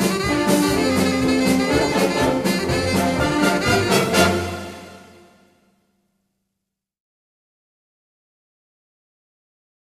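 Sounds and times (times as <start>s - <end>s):
saxophone: 0.0s - 5.6s.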